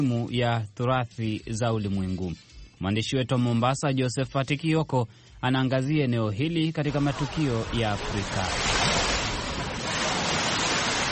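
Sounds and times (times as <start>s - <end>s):
speech: 0.0s - 8.8s
surf on the Indian Ocean shore at Mombasa Old Town: 6.9s - 11.0s.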